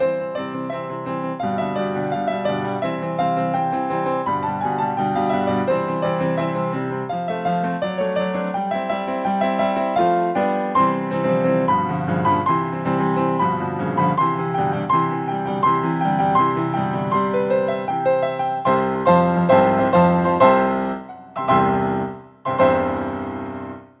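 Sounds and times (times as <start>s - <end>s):
solo piano: 0.0s - 23.9s.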